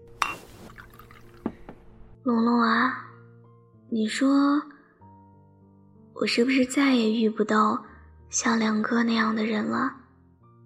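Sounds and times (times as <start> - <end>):
glass clinking: 0.2 - 1.7
sparkling water trickling and fizzing into a glass: 0.2 - 1.7
speech: 2.2 - 3.1, 3.9 - 4.7, 6.2 - 10.0.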